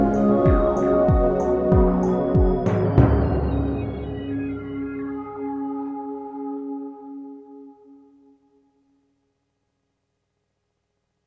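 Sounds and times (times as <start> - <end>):
ambient music: 0.0 - 9.0.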